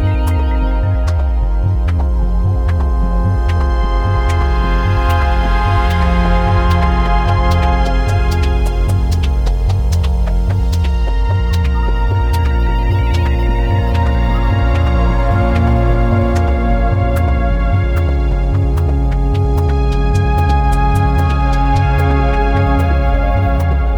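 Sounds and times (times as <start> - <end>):
synthesizer mix: 0.0 - 23.9.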